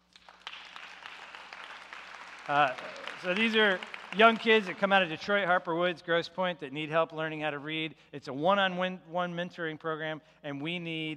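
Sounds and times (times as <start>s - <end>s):
crowd clapping: 0.0s - 5.8s
speech: 2.5s - 11.1s.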